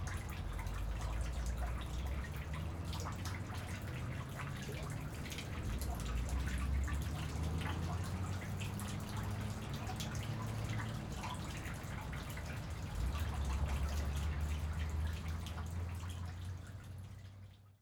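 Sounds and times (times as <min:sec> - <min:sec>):
sewer drain ambience: 0:00.0 - 0:17.8.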